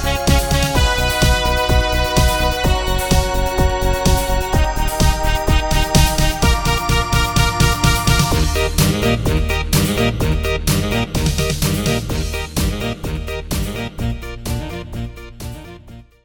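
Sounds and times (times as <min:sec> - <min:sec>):
music medley: 0:00.0 - 0:16.2.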